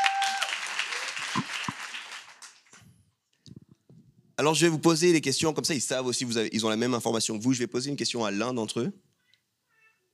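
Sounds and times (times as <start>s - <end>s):
audience applause: 0.0s - 2.8s
speech: 4.4s - 9.1s.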